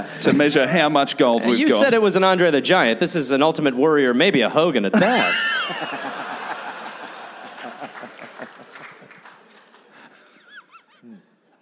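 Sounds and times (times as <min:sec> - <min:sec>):
speech: 0:00.0 - 0:06.2
laughter: 0:05.0 - 0:11.5
small crowd clapping: 0:06.2 - 0:10.4.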